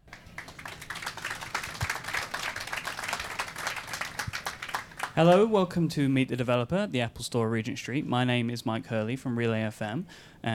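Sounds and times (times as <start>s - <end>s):
audience applause at Meet the Developer, Apple Store Regent Street: 0.0s - 5.5s
speech: 5.2s - 10.5s.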